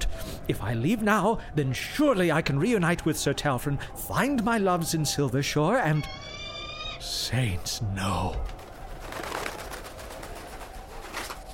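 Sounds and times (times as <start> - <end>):
speech: 0.5 - 6.3, 7.0 - 8.6
bird shrieking: 6.0 - 7.0.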